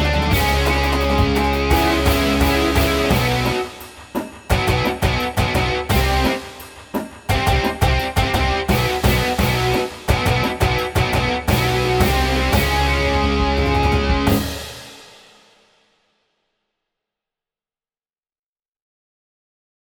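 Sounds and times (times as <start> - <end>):
rumbling drums: 0.0 - 15.5.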